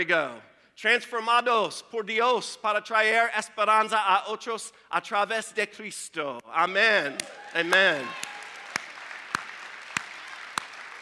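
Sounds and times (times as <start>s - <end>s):
speech: 0.0s - 8.3s
audience clapping: 7.0s - 11.0s.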